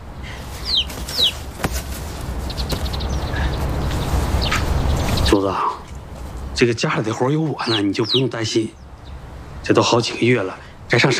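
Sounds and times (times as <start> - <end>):
baby chicks cheeping: 0.2 - 5.4, 7.6 - 9.2
speech: 5.3 - 5.8, 6.6 - 8.8, 9.6 - 11.1.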